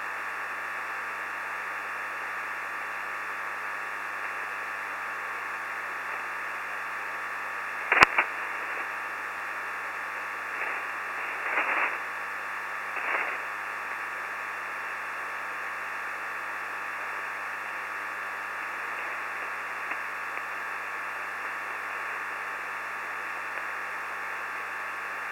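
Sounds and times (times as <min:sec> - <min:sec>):
shortwave radio signal at 4065 kHz: 0:00.0 - 0:25.3.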